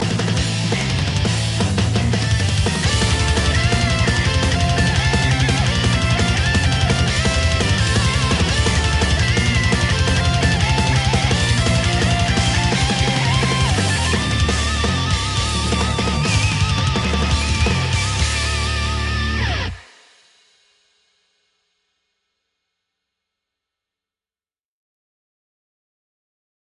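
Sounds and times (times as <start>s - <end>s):
metal music: 0.0s - 20.0s.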